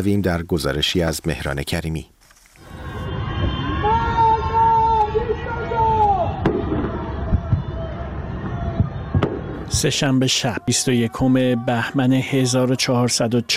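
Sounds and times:
speech: 0:00.0 - 0:02.2, 0:09.7 - 0:13.5
anti-government shouts from windows at night: 0:02.6 - 0:13.5.

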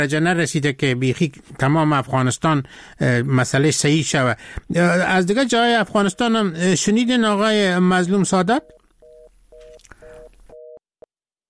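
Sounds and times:
speech: 0:00.0 - 0:08.8
telephone busy tone after a call is cut off: 0:08.6 - 0:10.8.

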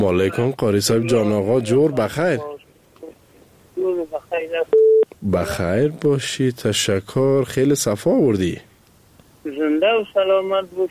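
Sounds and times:
speech: 0:00.0 - 0:02.6, 0:05.2 - 0:08.7, 0:09.4 - 0:10.8
phone line tone as a caller is connected: 0:04.7 - 0:05.0.

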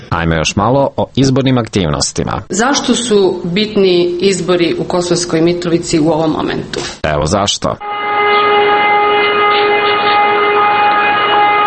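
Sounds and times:
speech: 0:00.2 - 0:08.0
civil defense siren over North Kosovska Mitrovica: 0:07.8 - 0:11.6.

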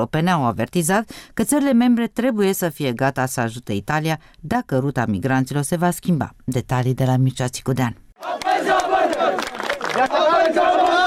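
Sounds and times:
speech: 0:00.0 - 0:08.7, 0:10.0 - 0:11.0
crowd clashing with police at migrant camp: 0:08.2 - 0:11.0.

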